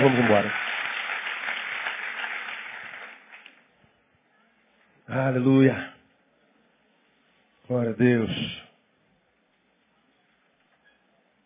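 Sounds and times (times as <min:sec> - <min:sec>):
speech: 0:00.0 - 0:00.7, 0:05.1 - 0:06.0, 0:07.7 - 0:08.6
audience applauding: 0:00.0 - 0:03.6.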